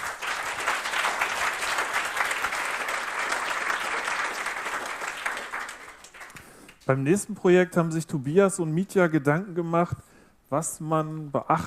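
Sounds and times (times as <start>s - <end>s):
audience applause: 0.0s - 6.8s
speech: 6.9s - 11.6s.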